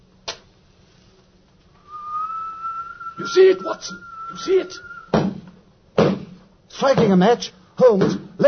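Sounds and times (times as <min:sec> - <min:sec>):
low clear whistle: 0:01.8 - 0:05.3
speech: 0:03.2 - 0:04.9, 0:06.8 - 0:08.4.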